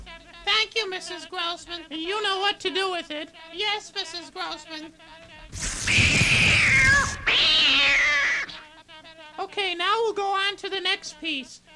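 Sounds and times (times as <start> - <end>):
speech: 0.7 - 8.2, 9.4 - 11.7
cat yowling: 5.7 - 8.6.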